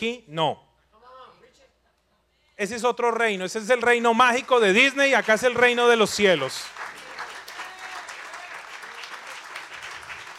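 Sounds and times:
speech: 0:00.0 - 0:00.6, 0:02.6 - 0:06.9
golf clap polite light applause: 0:04.1 - 0:10.3.

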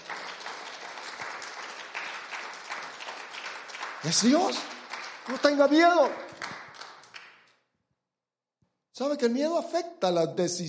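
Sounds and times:
audience applause: 0:00.0 - 0:07.5
speech: 0:04.0 - 0:06.3, 0:09.0 - 0:10.6.

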